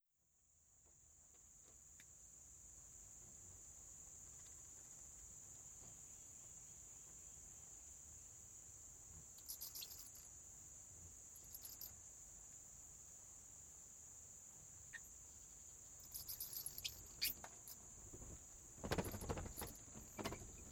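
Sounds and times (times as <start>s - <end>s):
bats flapping wings in a cave: 16.1s - 20.7s.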